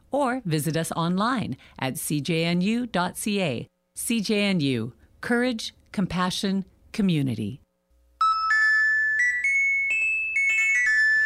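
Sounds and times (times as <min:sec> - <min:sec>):
speech: 0:00.1 - 0:07.6
radio weather electronic chime melody: 0:08.2 - 0:11.2.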